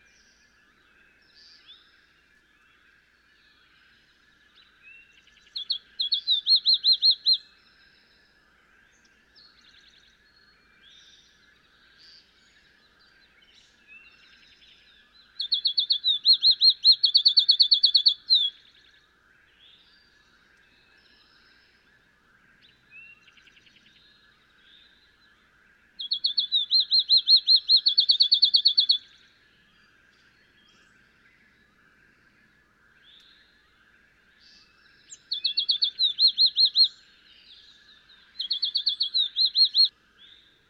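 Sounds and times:
field sparrow: 0:00.0 - 0:40.6.

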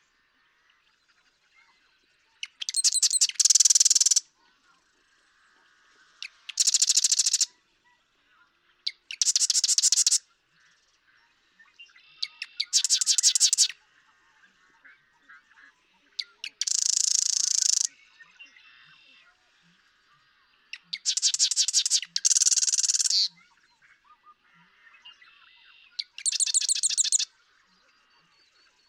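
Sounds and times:
marsh wren song: 0:02.4 - 0:04.2, 0:06.2 - 0:07.5, 0:09.0 - 0:10.2, 0:12.3 - 0:13.8, 0:16.2 - 0:17.9, 0:21.0 - 0:23.3, 0:26.0 - 0:27.3.

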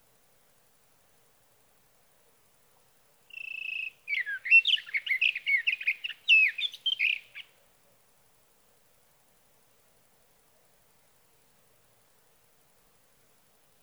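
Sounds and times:
Sage thrasher singing through the night: 0:03.3 - 0:07.5.

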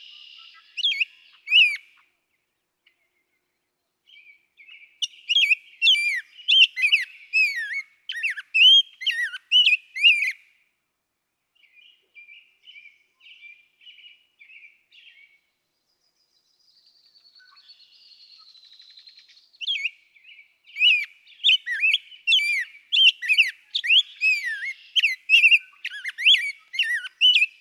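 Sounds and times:
Rose-breasted Grosbeak whistled song: 0:00.0 - 0:02.0, 0:04.1 - 0:10.4, 0:16.6 - 0:27.5.

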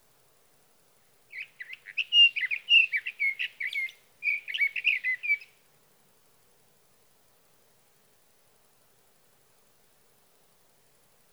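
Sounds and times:
sage thrasher warbling song: 0:01.3 - 0:05.5.

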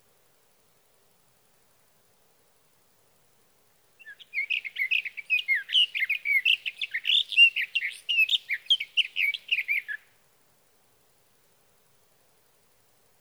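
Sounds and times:
sage thrasher song: 0:04.0 - 0:10.0.

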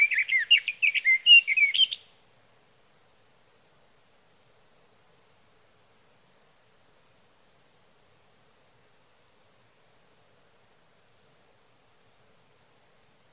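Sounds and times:
sage thrasher: 0:00.0 - 0:02.1.

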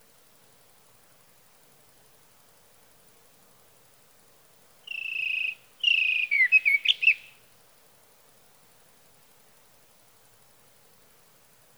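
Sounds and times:
sage thrasher song: 0:04.9 - 0:07.3.

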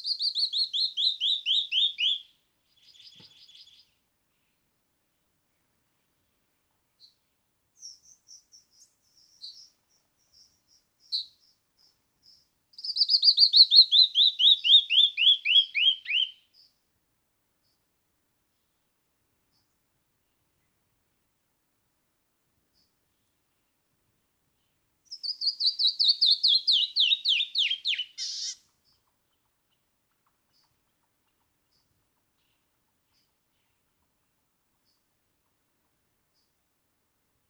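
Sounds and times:
canyon wren singing: 0:00.0 - 0:04.0, 0:07.8 - 0:16.8, 0:25.1 - 0:29.8.

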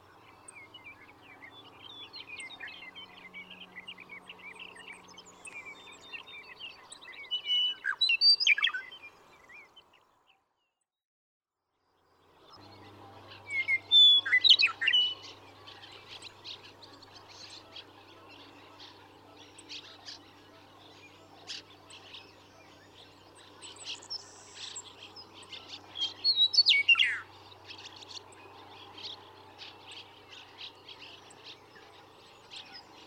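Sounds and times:
Western meadowlark whistled song: 0:00.5 - 0:09.7, 0:13.3 - 0:16.3, 0:23.6 - 0:27.3.

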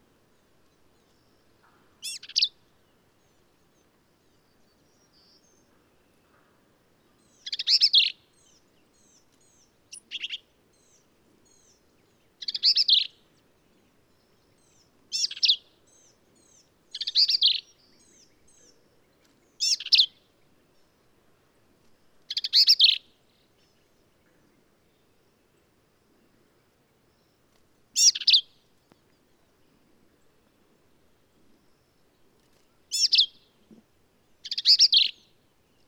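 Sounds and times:
black-capped vireo harsh chattering song: 0:02.0 - 0:02.5, 0:07.3 - 0:11.8, 0:12.4 - 0:13.1, 0:15.1 - 0:18.8, 0:19.6 - 0:20.1, 0:22.3 - 0:23.0, 0:28.0 - 0:28.5, 0:32.9 - 0:33.4, 0:34.4 - 0:35.3.

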